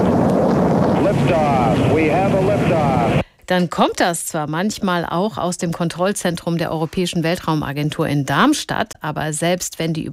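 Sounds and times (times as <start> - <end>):
rocket launch: 0.0 - 3.2
speech: 3.5 - 10.1.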